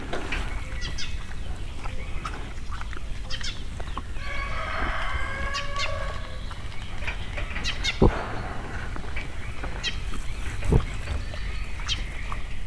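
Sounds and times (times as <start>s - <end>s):
Mangalica pig grunting in a zoo: 0.0s - 12.6s
swallow calling in a zoo: 0.0s - 12.6s
rooster crowing in a zoo: 4.2s - 6.8s.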